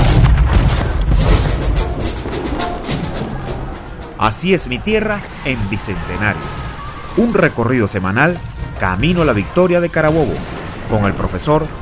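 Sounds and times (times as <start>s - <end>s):
gunfire volley after the command to fire: 0.0s - 2.2s, 9.0s - 11.8s
speech: 4.2s - 11.8s.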